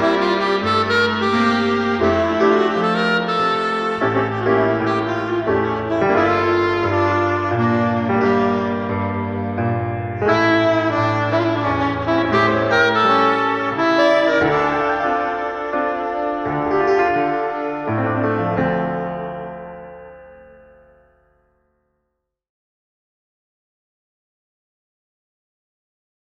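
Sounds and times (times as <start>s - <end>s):
saxophone: 0.0s - 19.8s
piano: 0.0s - 22.3s.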